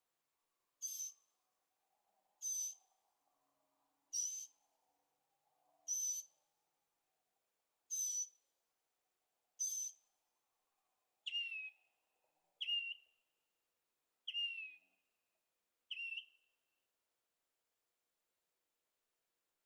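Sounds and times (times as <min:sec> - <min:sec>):
bird calls: 0:00.8 - 0:01.2, 0:02.4 - 0:02.8, 0:04.2 - 0:04.5, 0:05.9 - 0:06.3, 0:07.9 - 0:08.3, 0:09.6 - 0:10.0, 0:11.3 - 0:11.8, 0:12.6 - 0:13.0, 0:14.3 - 0:14.8, 0:15.9 - 0:16.4.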